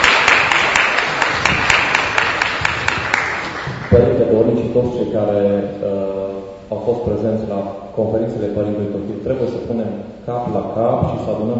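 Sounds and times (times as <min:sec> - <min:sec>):
audience applause: 0:00.0 - 0:04.0
speech: 0:03.9 - 0:11.5.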